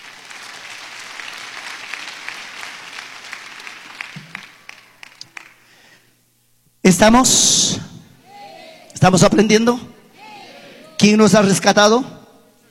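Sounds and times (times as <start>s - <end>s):
crowd applauding: 0.0s - 5.7s
speech: 6.9s - 7.9s, 9.0s - 9.9s, 11.0s - 12.2s.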